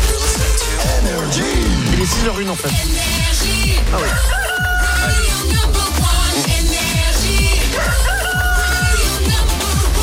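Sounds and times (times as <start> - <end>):
loud driving electronic beat with deep thumping bass kicks: 0.0 - 10.0
speech: 2.1 - 6.9
rooster crowing at the opening of a radio morning show: 4.1 - 5.3, 7.8 - 9.0.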